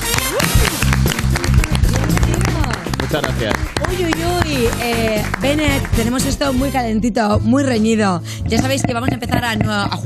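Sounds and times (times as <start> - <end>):
studio audience applause: 0.0 - 6.4
speech: 3.1 - 10.0.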